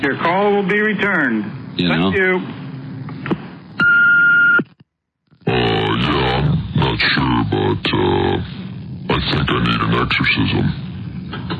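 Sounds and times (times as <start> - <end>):
speech: 0.0 - 2.6, 7.1 - 8.6, 9.2 - 11.5
low hum: 0.0 - 11.5
answering machine beep: 3.8 - 4.7.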